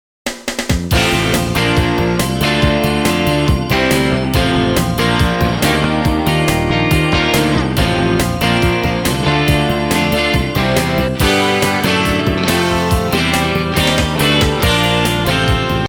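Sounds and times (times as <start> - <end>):
upbeat country music: 0.7 - 15.8.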